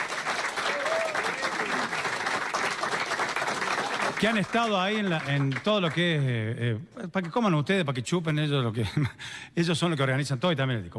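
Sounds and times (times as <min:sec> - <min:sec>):
audience applause: 0:00.0 - 0:06.1
speech: 0:04.2 - 0:10.9.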